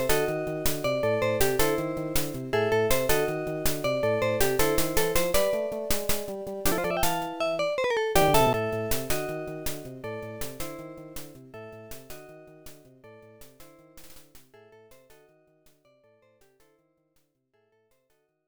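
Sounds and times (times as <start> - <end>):
main background music: 0.0 - 12.0.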